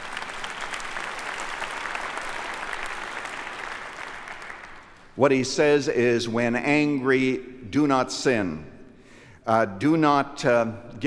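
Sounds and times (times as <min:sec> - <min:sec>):
crowd applauding: 0:00.0 - 0:05.2
speech: 0:05.2 - 0:08.7, 0:09.5 - 0:11.0.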